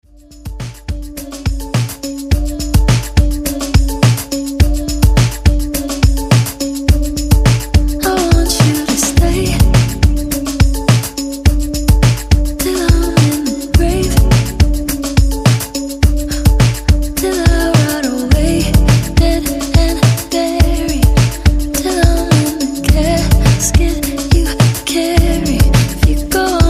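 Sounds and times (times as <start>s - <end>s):
breakbeat drums at 105 bpm: 0.0s - 26.6s.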